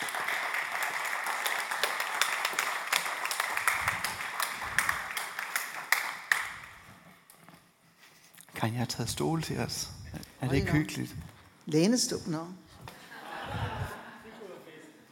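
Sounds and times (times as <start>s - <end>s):
audience clapping: 0.0s - 7.2s
speech: 8.6s - 12.6s
laughter: 12.9s - 14.9s.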